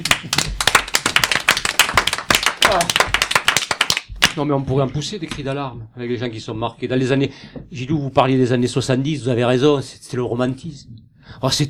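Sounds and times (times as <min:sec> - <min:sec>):
applause: 0:00.0 - 0:04.4
speech: 0:02.7 - 0:03.1, 0:04.4 - 0:11.6.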